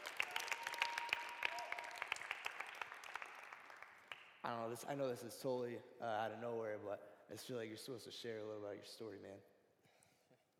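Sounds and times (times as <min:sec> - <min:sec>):
audience applause: 0:00.0 - 0:04.2
speech: 0:04.4 - 0:09.5.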